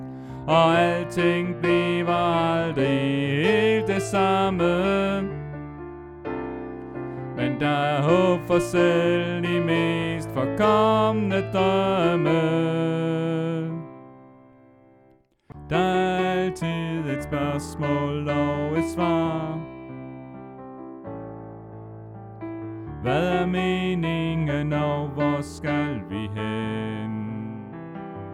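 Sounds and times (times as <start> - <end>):
alto singing: 0.0 - 5.6, 7.2 - 14.2, 15.5 - 20.1, 23.0 - 28.1.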